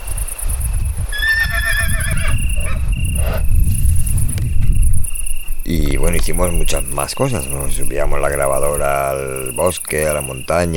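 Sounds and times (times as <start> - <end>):
steady high insect-like hum: 0.0 - 10.7
horse roaming free in a mountain forest whinnying: 1.1 - 3.4
low rumbling background: 1.9 - 9.7
speech: 5.9 - 10.7.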